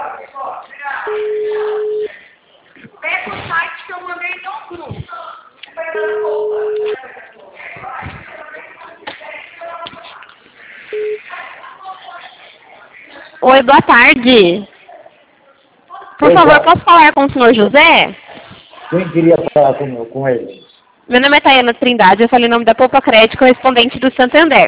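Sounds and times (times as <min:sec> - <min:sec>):
telephone ringing tones over a phone-quality line: 0:01.0 - 0:02.1, 0:05.9 - 0:07.1, 0:10.9 - 0:11.2
speech: 0:13.5 - 0:14.7, 0:16.2 - 0:18.2, 0:18.9 - 0:24.6.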